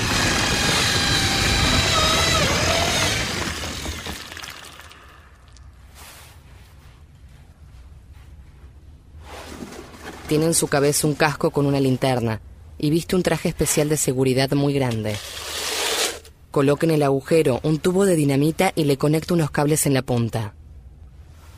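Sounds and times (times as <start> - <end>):
power drill boring a hole in a wall: 0.0 - 5.1, 15.1 - 16.3
speech: 10.3 - 15.4, 16.5 - 20.6.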